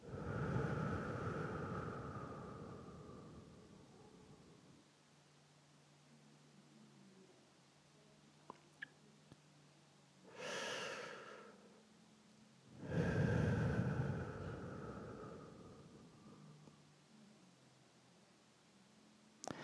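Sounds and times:
slow deliberate breathing during a guided breathing exercise: 0.0 - 4.8, 10.3 - 11.8, 12.7 - 16.9.

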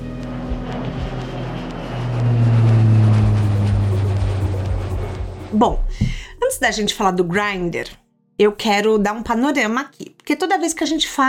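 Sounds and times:
small jet plane taking off: 0.0 - 6.4
speech: 5.6 - 11.2.

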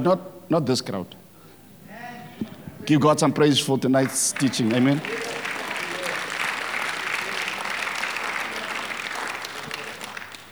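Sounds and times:
speech: 0.0 - 1.2, 2.9 - 5.4
audience applauding: 3.9 - 10.5.

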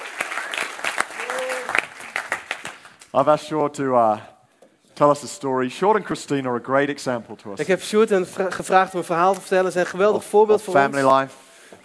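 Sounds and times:
audience applause: 0.0 - 3.0
speech: 3.1 - 4.3, 5.0 - 11.8.

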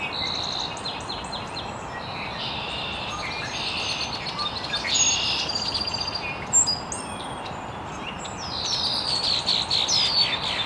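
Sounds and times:
continuous hiss: 0.0 - 10.6
several birds chirping and trilling: 0.0 - 10.6.

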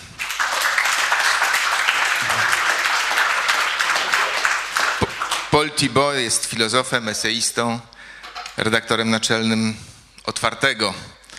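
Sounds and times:
audience applause welcoming a guest: 0.0 - 5.8
speech: 5.5 - 7.9, 8.6 - 11.1.

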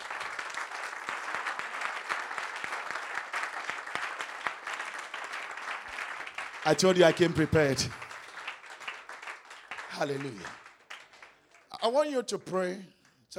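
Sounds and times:
small group clapping: 0.0 - 13.3
speech: 6.6 - 8.0, 10.0 - 10.6, 11.8 - 13.3.

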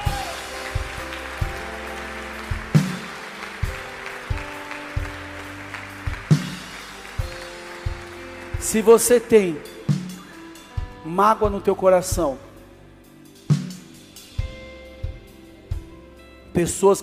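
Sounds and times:
audience clapping: 0.0 - 10.4
sustained keyboard chords: 0.0 - 17.0
speech: 8.6 - 9.8, 11.2 - 12.5, 16.6 - 17.0.

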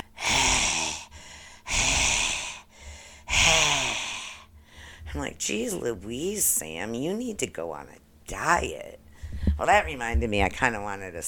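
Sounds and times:
person imitating heavy breathing of a sleeping dog: 0.0 - 5.1
speech: 5.2 - 9.0, 9.6 - 11.2.

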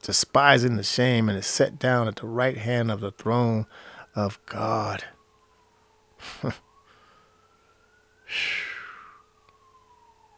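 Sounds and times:
speech: 0.0 - 5.2, 6.2 - 6.7, 8.3 - 8.7
siren wailing: 0.8 - 10.3
breathy bursts of noise: 8.3 - 9.2.

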